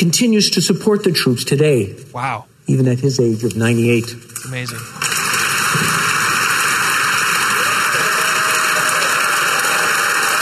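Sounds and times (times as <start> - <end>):
speech: 0.0 - 5.1
audience clapping: 4.8 - 10.3.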